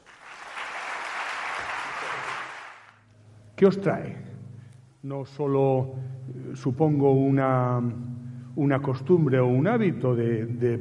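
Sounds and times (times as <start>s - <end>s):
audience applause: 0.0s - 3.0s
speech: 3.6s - 4.3s, 5.0s - 10.7s.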